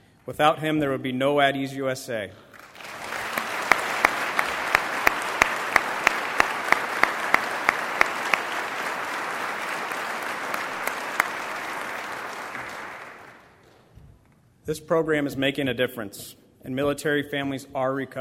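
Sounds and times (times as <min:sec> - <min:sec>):
speech: 0:00.2 - 0:02.5, 0:14.7 - 0:18.1
applause: 0:02.5 - 0:13.8.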